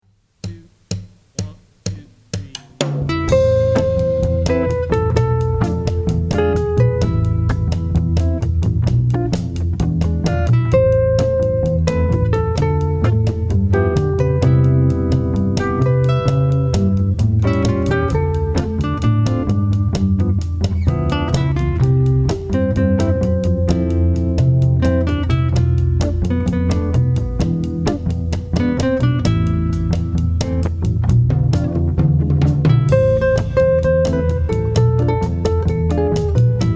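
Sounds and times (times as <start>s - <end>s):
jazz band playing: 2.7s - 36.7s.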